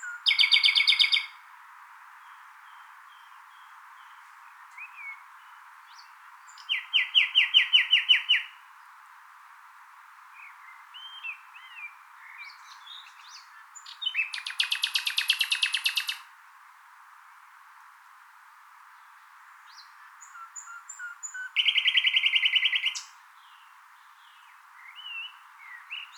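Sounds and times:
Common nightingale song: 0.0 - 1.4, 2.1 - 8.9, 10.3 - 16.3, 18.9 - 26.1.

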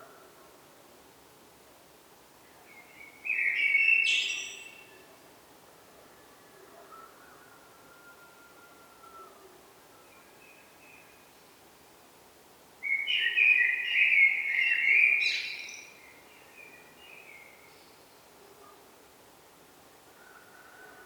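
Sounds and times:
Eurasian blackbird Turdus merula song: 2.6 - 5.0, 12.8 - 18.2.

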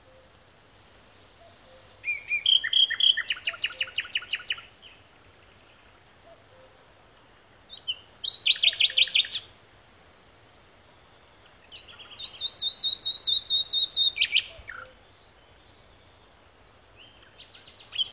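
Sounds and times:
common nightingale Luscinia megarhynchos singing: 0.0 - 18.1.

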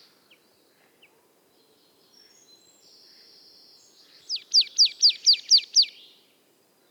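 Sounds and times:
Marsh Tit rattling song: 4.3 - 5.9.

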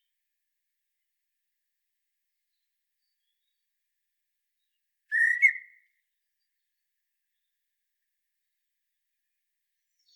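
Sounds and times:
common blackbird Turdus merula singing scratchy warbled phrases: 5.1 - 5.7.

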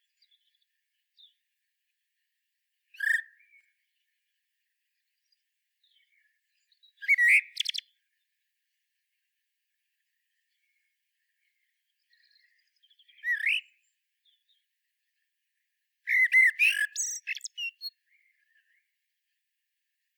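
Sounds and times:
common blackbird song: 3.0 - 3.6, 5.8 - 7.9, 11.9 - 14.6, 16.1 - 18.8.

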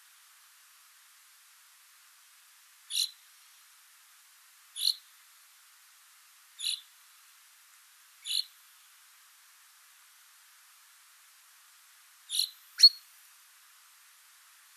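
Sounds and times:
common chaffinch Fringilla coelebs calling: 2.9 - 3.2, 4.8 - 5.1, 6.6 - 6.9, 8.2 - 8.6, 12.3 - 13.1.

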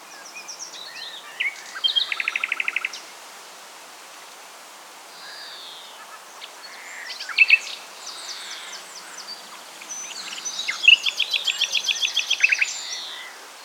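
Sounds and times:
common nightingale Luscinia megarhynchos singing: 0.1 - 3.0, 7.0 - 13.4.

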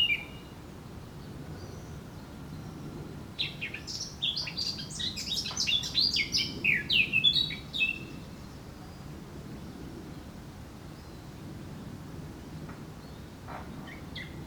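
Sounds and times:
Eurasian blackcap singing: 0.0 - 0.4, 3.4 - 8.2.

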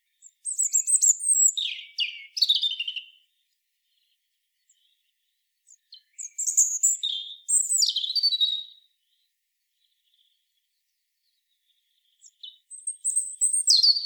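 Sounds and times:
European robin Erithacus rubecula singing high sweet whistles and jumbled trills: 0.1 - 3.3, 3.9 - 9.0, 11.3 - 14.0.

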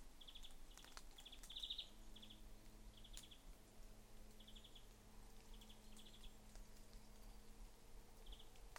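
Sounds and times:
European greenfinch making rapid high twittering trills: 0.1 - 3.5, 4.3 - 7.6, 8.2 - 8.6.

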